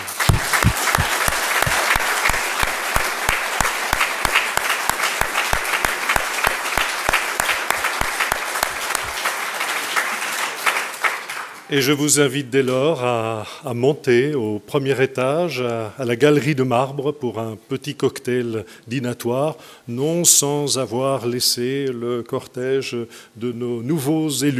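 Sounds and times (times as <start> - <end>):
audience applause: 0.0 - 11.7
speech: 11.7 - 24.5.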